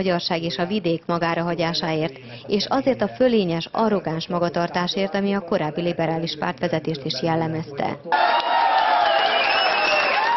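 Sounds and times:
speech: 0.0 - 8.5
delegates at a liberal party congress clapping and cheering: 8.1 - 10.3.

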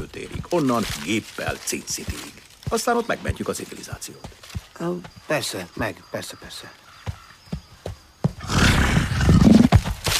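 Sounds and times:
speech: 0.0 - 6.8
stomach growling: 8.4 - 10.1.

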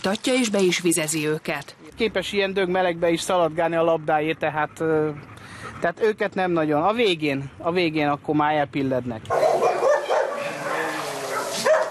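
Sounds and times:
speech: 0.0 - 9.4
dogs barking at the Illatos út dog shelter: 9.3 - 11.8.

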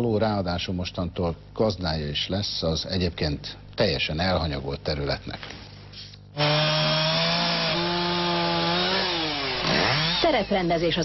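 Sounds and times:
speech: 0.0 - 5.6, 6.4 - 6.8, 10.3 - 11.0
chainsaw cutting down trees: 6.4 - 10.6.

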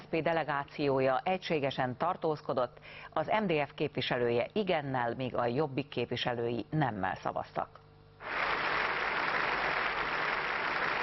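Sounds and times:
speech: 0.1 - 8.4
applause in parliament chamber: 8.2 - 11.0.

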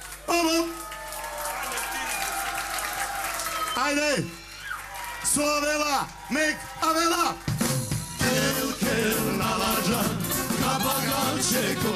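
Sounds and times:
audience clapping along at a live music performance: 0.0 - 8.0
speech: 3.8 - 4.4, 5.4 - 7.5, 9.0 - 11.9.

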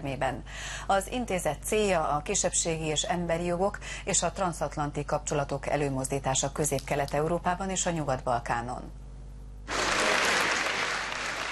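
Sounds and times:
speech: 0.0 - 9.0
loud applause in the upper house of parliament: 9.7 - 11.4.

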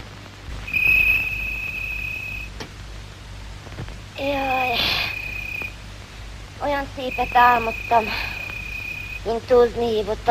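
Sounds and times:
cricket chirping: 0.7 - 2.6, 4.2 - 5.8, 6.7 - 9.4
speech: 4.2 - 4.5, 6.7 - 8.3, 9.2 - 10.3.

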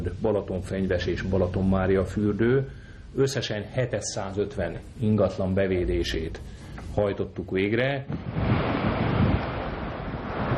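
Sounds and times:
speech: 0.2 - 8.5
strong wind at Kab-hegy in the Bakony hills: 8.1 - 10.5.

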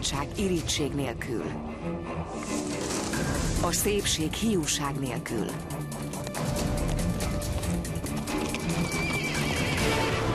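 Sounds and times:
speech: 0.1 - 5.8
horse hooves clip-clopping: 5.6 - 10.0
horse neighing: 8.3 - 10.2.

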